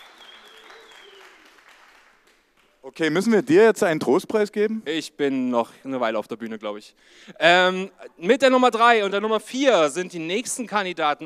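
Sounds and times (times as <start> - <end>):
audience applause: 0.0 - 3.0
speech: 2.8 - 11.2.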